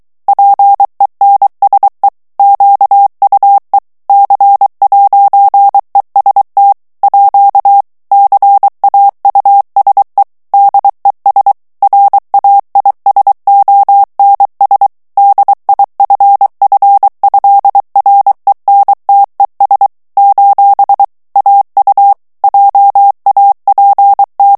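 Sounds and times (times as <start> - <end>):
morse code plain French text at 22 words per minute: 0.3 - 24.5.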